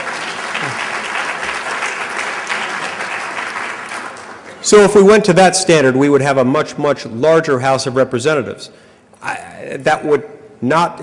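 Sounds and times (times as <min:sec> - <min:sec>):
audience applause: 0:00.0 - 0:04.6
speech: 0:04.7 - 0:11.0.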